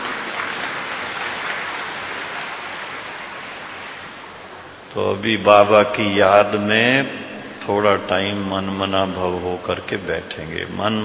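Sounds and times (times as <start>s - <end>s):
audience clapping hands: 0.0s - 4.1s
speech: 4.9s - 11.0s.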